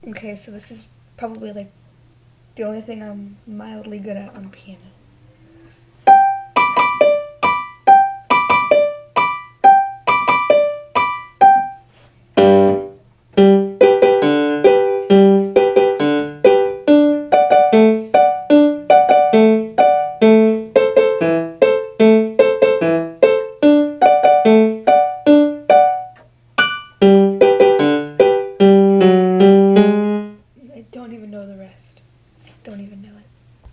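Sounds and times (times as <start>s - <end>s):
piano playing: 6.0s - 30.4s.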